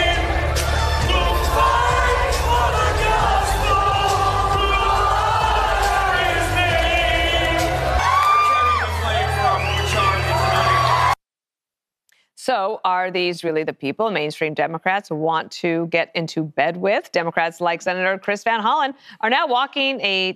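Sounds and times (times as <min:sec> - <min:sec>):
crowd applause: 0:00.0 - 0:11.2
speech: 0:12.5 - 0:20.3.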